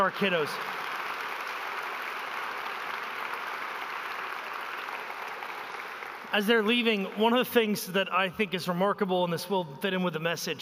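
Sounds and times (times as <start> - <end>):
speech: 0.0 - 0.8, 6.3 - 10.6
audience applause: 0.0 - 7.5.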